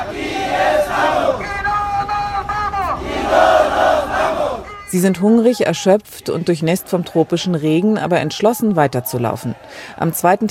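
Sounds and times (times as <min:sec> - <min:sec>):
refugees chanting in chorus: 0:00.0 - 0:10.4
speech: 0:04.9 - 0:10.4.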